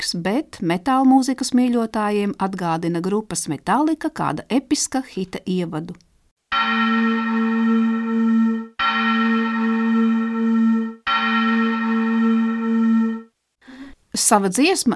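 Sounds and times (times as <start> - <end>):
speech: 0.0 - 9.8, 14.2 - 14.9
loud ringing bell-like signal chime: 6.5 - 13.3.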